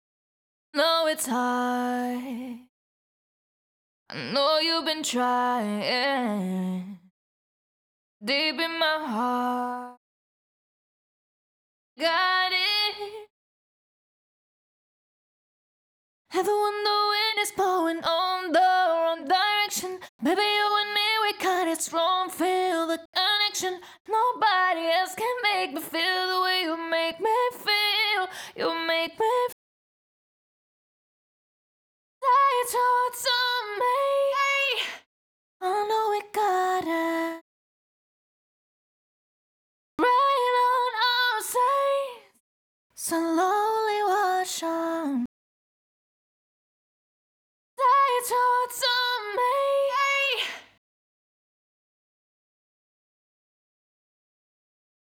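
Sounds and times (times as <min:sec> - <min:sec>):
a cappella pop vocals in E major: 0:00.8 - 0:02.7, 0:04.1 - 0:07.1, 0:08.2 - 0:10.0, 0:12.0 - 0:13.3, 0:16.3 - 0:29.6, 0:32.2 - 0:37.4, 0:40.0 - 0:42.4, 0:43.0 - 0:45.3, 0:47.8 - 0:50.8.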